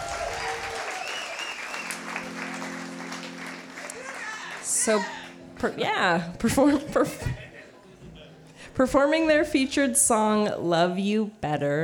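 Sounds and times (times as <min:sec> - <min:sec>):
audience applause: 0:00.0 - 0:05.6
speech: 0:04.8 - 0:07.4, 0:08.8 - 0:11.8
laughter: 0:06.4 - 0:08.5.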